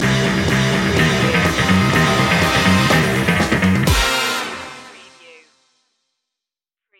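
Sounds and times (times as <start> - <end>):
retro quest stinger: 0.0 - 5.0.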